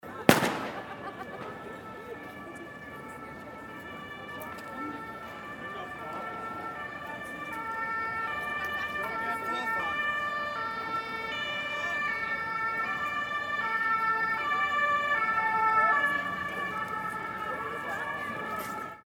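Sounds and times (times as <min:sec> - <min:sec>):
laughter: 0:00.0 - 0:02.5
emergency vehicle siren on New Year's Eve: 0:00.1 - 0:19.0.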